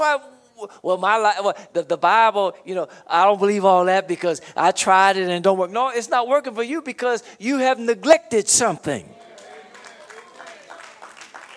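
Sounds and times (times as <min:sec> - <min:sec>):
speech: 0:00.0 - 0:09.2
sparse half-hearted clapping from a church congregation: 0:09.4 - 0:11.5.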